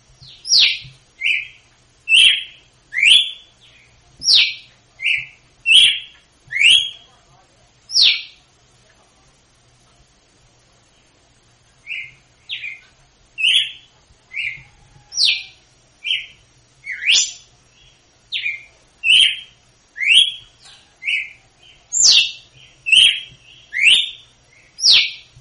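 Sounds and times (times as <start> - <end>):
red-cowled cardinal whistled slurs: 0.3 - 3.5, 4.2 - 7.1, 13.4 - 17.5, 18.3 - 21.4, 22.0 - 25.3.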